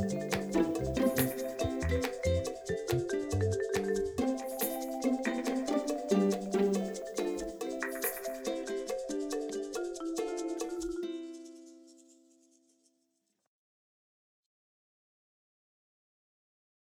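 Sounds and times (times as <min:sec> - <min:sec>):
quirky underscore music: 0:00.0 - 0:11.8.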